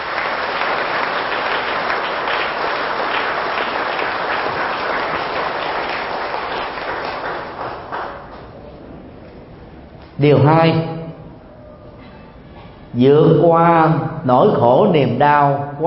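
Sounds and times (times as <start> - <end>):
audience applause: 0.0 - 8.5
speech: 10.2 - 11.0, 13.0 - 15.8.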